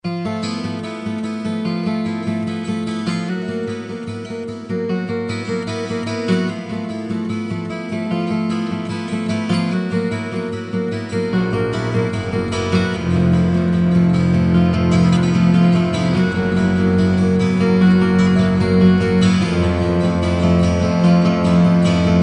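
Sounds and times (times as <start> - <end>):
guitar with orchestra: 0.0 - 22.2.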